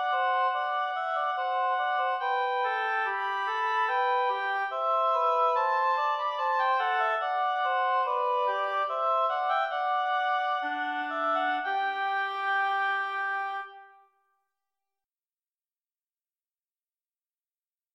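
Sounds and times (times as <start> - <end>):
sarabande music: 0.0 - 14.0.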